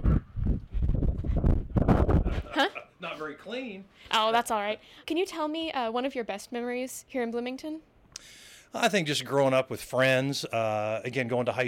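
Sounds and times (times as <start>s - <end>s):
gusty wind buffeting the microphone near a ball field in Bloomington: 0.0s - 2.5s
speech: 2.6s - 11.6s.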